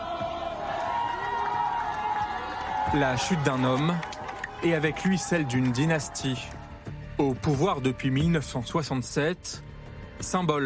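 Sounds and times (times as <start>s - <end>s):
crowd cheering coup leaders in the streets of Libreville, Gabon: 0.0s - 7.0s
speech: 2.9s - 6.6s, 7.2s - 10.6s.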